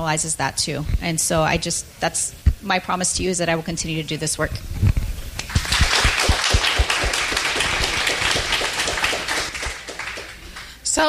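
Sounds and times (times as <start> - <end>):
speech: 0.0 - 4.9
audience applause: 5.4 - 10.8.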